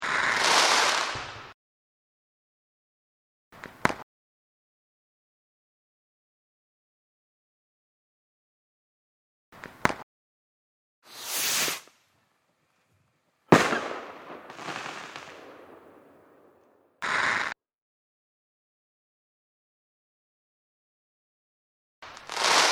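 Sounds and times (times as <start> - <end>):
fireworks for desensitization: 0.0 - 1.6, 11.1 - 12.2, 13.5 - 17.6, 22.1 - 22.7.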